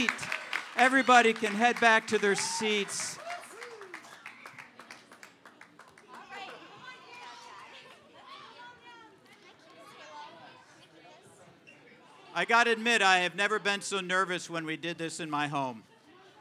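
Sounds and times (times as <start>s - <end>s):
audience clapping: 0.0s - 7.3s
lively crowd chatter with children's voices: 0.0s - 16.3s
speech: 0.8s - 3.2s, 12.4s - 15.9s.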